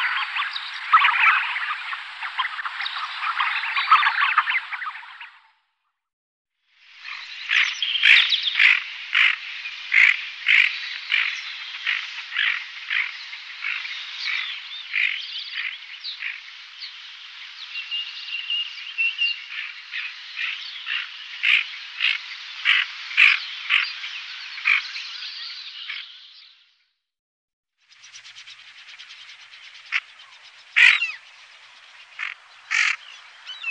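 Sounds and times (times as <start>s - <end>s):
tufted ducks: 0.0s - 5.5s, 7.0s - 16.5s, 18.6s - 25.0s, 28.0s - 33.6s.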